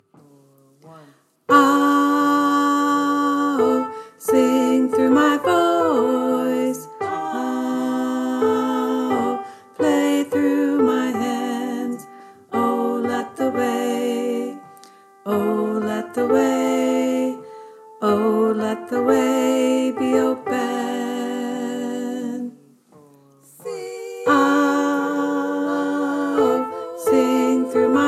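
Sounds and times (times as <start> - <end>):
tenor singing: 0.1 - 28.0.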